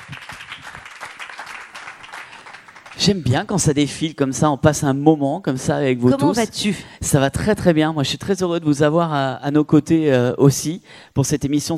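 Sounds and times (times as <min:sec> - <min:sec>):
audience applause at a French event: 0:00.0 - 0:03.2
speech: 0:03.0 - 0:11.7.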